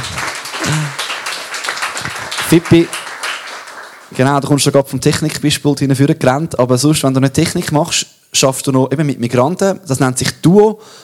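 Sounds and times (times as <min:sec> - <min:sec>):
audience clapping: 0:00.0 - 0:04.7
speech: 0:02.5 - 0:03.0, 0:04.2 - 0:11.0.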